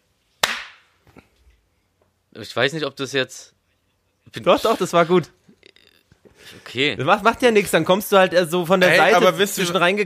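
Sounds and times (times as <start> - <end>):
hand clap for recording sync: 0.4 - 0.8
speech: 2.4 - 3.6, 4.3 - 5.4, 6.4 - 10.0.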